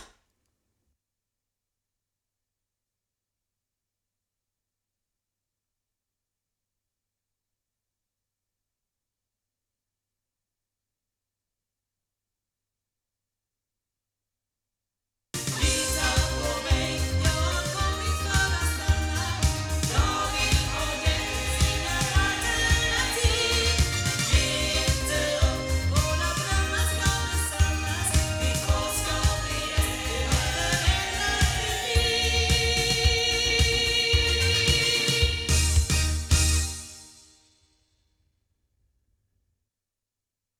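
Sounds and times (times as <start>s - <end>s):
loudspeaker playback: 15.4s - 36.6s.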